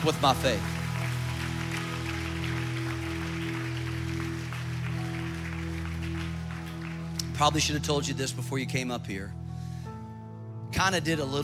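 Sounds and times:
speech: 0.0 - 0.8, 7.4 - 9.4, 10.8 - 11.4
audience clapping: 0.0 - 8.0.

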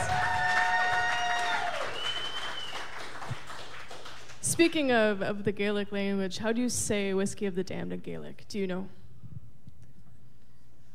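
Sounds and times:
live audience applauding: 0.0 - 4.4
speech: 4.6 - 9.0.

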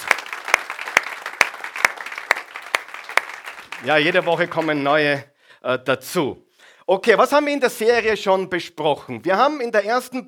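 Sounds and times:
audience applause: 0.0 - 5.0
sharp rhythmic claps: 0.0 - 5.1
speech: 3.8 - 10.2.

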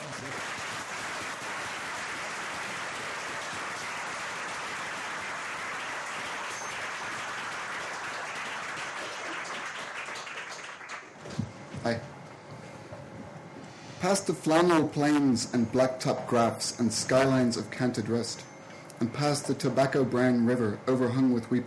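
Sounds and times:
audience applause: 0.0 - 11.2
speech: 11.9 - 12.1, 14.0 - 21.6.

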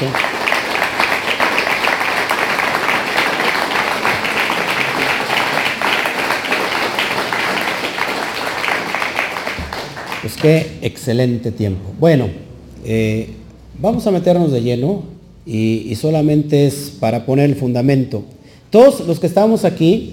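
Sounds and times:
speech: 0.0 - 0.3, 10.4 - 20.1
audience applause: 0.0 - 10.5.

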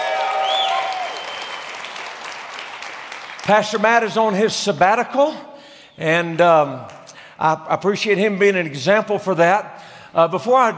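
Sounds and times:
church congregation clapping in Denver: 0.0 - 4.3
speech: 3.5 - 10.7.

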